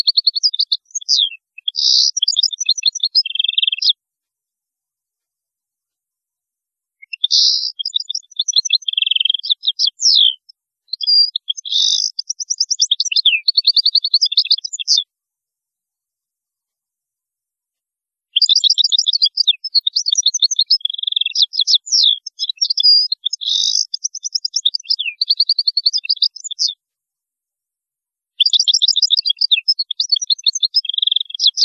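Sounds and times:
European goldfinch twittering song: 0.0 - 4.0, 7.0 - 15.0, 18.4 - 26.7, 28.4 - 31.6.

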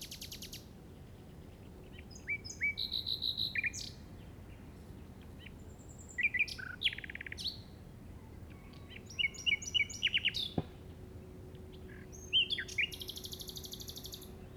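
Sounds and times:
common nightingale singing: 1.9 - 4.0, 5.4 - 7.7, 8.6 - 10.7, 11.8 - 14.5.

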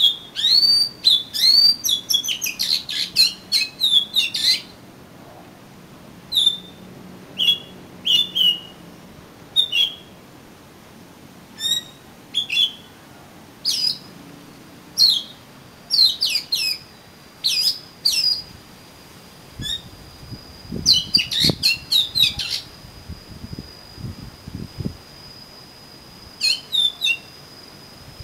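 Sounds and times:
Oriental magpie-robin whistling: 0.0 - 4.8, 6.3 - 6.8, 7.4 - 8.8, 9.6 - 10.2, 11.6 - 12.9, 13.6 - 14.1, 15.0 - 18.5, 19.6 - 19.9, 20.8 - 22.7, 26.4 - 27.3.

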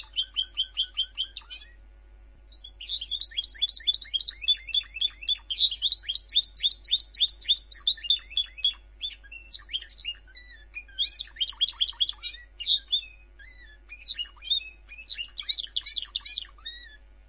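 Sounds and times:
bird song with sharp chirps, trills and twisting whistles: 0.0 - 17.2.

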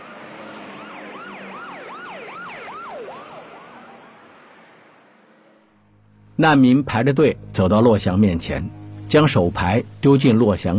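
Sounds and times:
police cars with sirens speeding away: 0.0 - 5.0
speech: 6.4 - 10.7.

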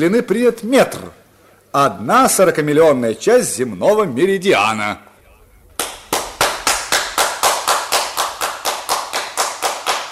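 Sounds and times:
speech: 0.0 - 5.1
clapping-like sharp claps from above a cave: 5.6 - 10.1.

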